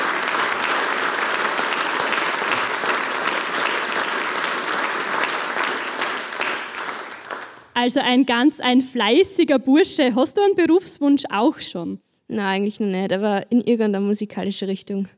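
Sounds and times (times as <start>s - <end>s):
audience applause: 0.0s - 7.8s
speech: 7.8s - 15.1s.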